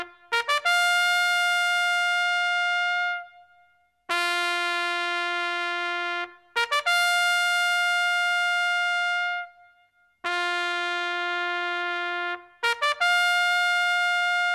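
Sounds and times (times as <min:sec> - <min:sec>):
military trumpet: 0:00.0 - 0:14.5.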